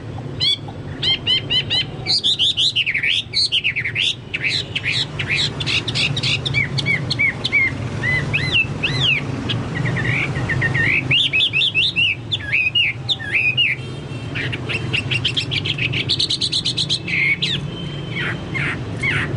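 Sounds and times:
Chinese hwamei singing looping whistles and quick stutters: 0.4s - 19.3s.

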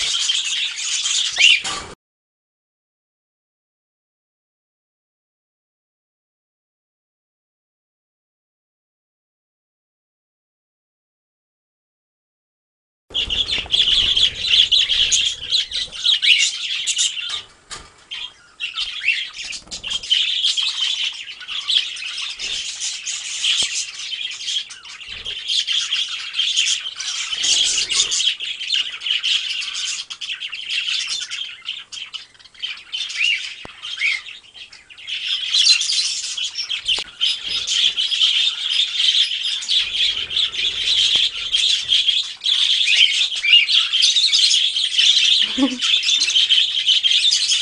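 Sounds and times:
budgerigar flock chattering: 0.0s - 1.8s, 13.1s - 17.5s, 18.1s - 47.6s.

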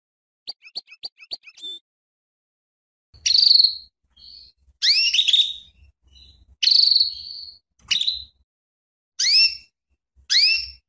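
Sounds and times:
female canary calling with sharp sweeping chirps and buzzy notes: 0.5s - 1.8s, 3.2s - 8.4s, 9.2s - 10.8s.

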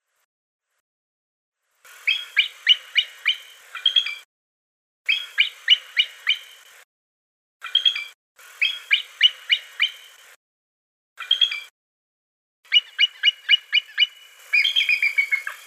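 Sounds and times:
bald eagle calling: 2.1s - 4.2s, 5.1s - 6.6s, 7.6s - 10.1s, 12.7s - 15.6s.

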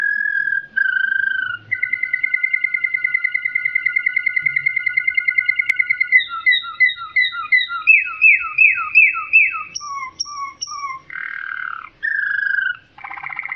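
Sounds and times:
Waterslager canary singing: 0.0s - 13.5s.

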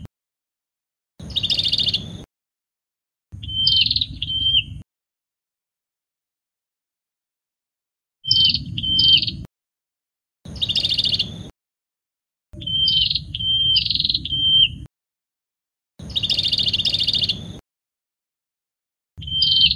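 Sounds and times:
prinia song with level whistles and harsh buzzy trills: 1.2s - 2.3s, 3.4s - 4.8s, 8.2s - 9.5s, 10.5s - 11.5s, 12.6s - 14.9s, 16.0s - 17.6s, 19.2s - 19.7s.

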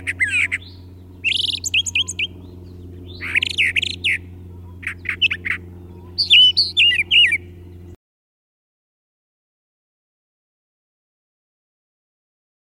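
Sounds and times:
brown thrasher singing: 0.0s - 8.0s
steady low hum: 0.0s - 8.0s.

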